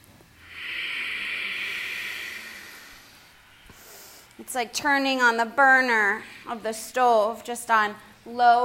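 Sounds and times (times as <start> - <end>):
slow nasal breath with lips sealed during yoga: 0.4 - 4.4
speech: 4.4 - 8.6.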